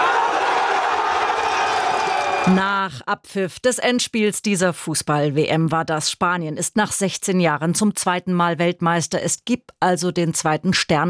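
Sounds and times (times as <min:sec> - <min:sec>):
Spanish football fans cheering after World Cup final win against Argentina: 0:00.0 - 0:02.6
speech: 0:02.4 - 0:11.0.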